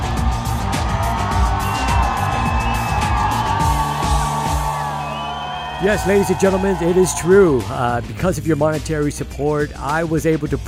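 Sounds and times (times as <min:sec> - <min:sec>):
large crowd cheering wildly: 0:00.0 - 0:08.1
high whistle-like tones: 0:01.6 - 0:06.7
speech: 0:05.8 - 0:10.6.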